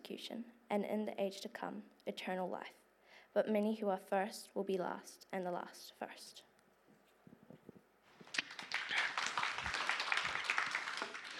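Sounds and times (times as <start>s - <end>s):
speech: 0.1s - 2.8s, 3.4s - 6.5s
audience applause: 8.2s - 11.3s.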